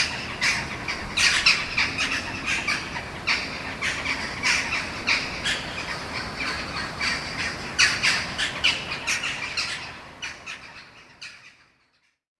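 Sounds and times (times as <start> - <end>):
flock of jackdaws calling: 0.0 - 11.8.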